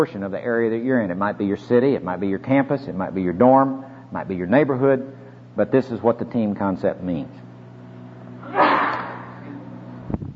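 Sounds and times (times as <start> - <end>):
speech: 0.0 - 7.4
low steady hum: 0.0 - 10.3
sneeze: 8.4 - 9.6.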